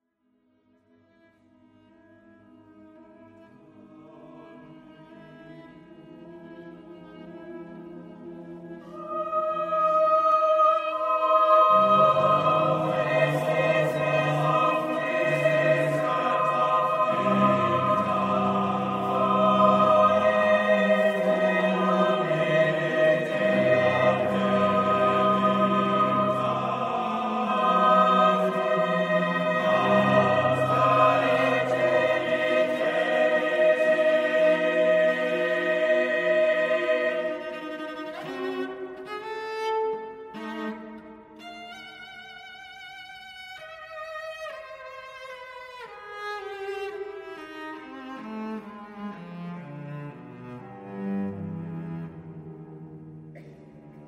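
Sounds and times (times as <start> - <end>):
cello: 0.6 - 54.0
choir singing: 3.4 - 39.4, 53.3 - 54.0.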